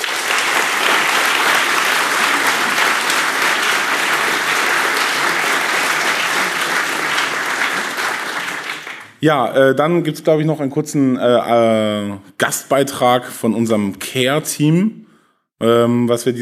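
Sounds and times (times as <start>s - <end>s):
audience applause: 0.0s - 9.2s
speech: 9.2s - 15.0s, 15.6s - 16.4s.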